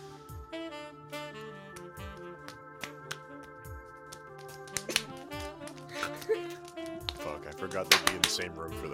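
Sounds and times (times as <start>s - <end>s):
wet hand claps of a handshake: 1.7s - 8.6s
speech: 7.6s - 8.9s.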